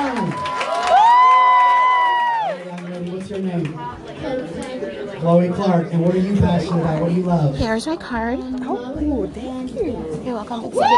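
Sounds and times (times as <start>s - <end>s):
crowd cheering for a young girl after her turn on show: 0.0s - 3.4s
sustained whoop: 0.4s - 2.6s
speech: 5.3s - 10.9s.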